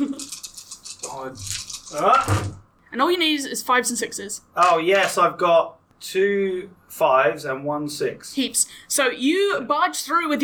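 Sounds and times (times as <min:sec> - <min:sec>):
dice rattling before a roll: 0:00.0 - 0:02.6
speech: 0:01.2 - 0:10.4.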